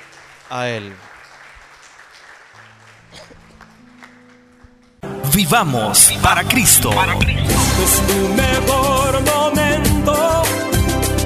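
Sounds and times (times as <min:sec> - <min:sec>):
audience applause: 0:00.0 - 0:07.2
speech: 0:00.5 - 0:01.1, 0:05.4 - 0:10.6.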